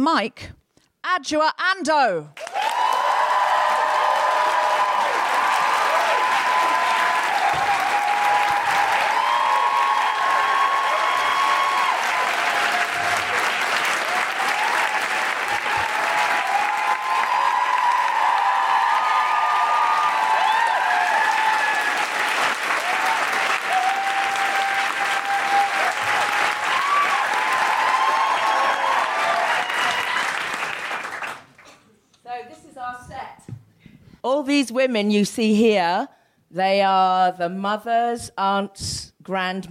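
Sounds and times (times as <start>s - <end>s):
speech: 0.0s - 2.6s, 34.5s - 39.7s
audience applause at a live feminist stage show: 2.4s - 31.6s.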